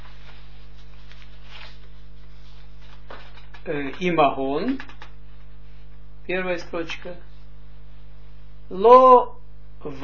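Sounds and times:
page of a Zohar study book turning: 0:00.0 - 0:04.0
low electrical hum: 0:00.0 - 0:10.0
speech: 0:03.6 - 0:05.0, 0:06.3 - 0:07.3, 0:08.7 - 0:10.0.

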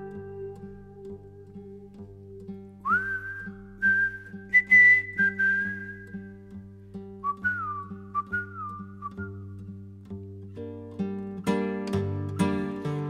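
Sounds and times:
person whistling a tune: 0:02.8 - 0:06.4, 0:07.2 - 0:09.6, 0:11.4 - 0:13.0.

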